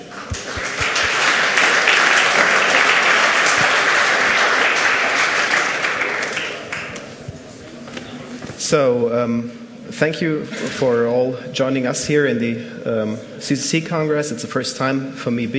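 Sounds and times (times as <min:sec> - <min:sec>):
crowd applause: 0:00.0 - 0:07.4
speech: 0:08.7 - 0:15.5.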